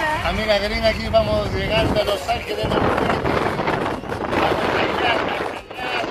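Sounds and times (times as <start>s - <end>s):
strong wind in Los Angeles blowing into the microphone: 0.1s - 6.0s
speech: 0.3s - 3.4s.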